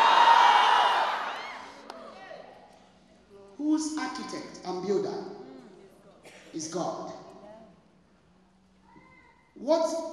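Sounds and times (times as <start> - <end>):
crowd shouting: 0.0 - 1.9
speech: 3.8 - 5.4, 6.5 - 7.2, 9.6 - 10.1.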